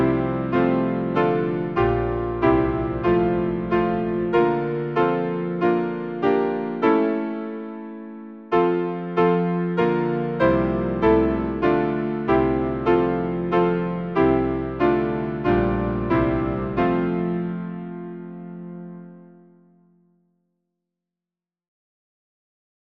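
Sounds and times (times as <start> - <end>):
hymn on piano: 0.0 - 19.9.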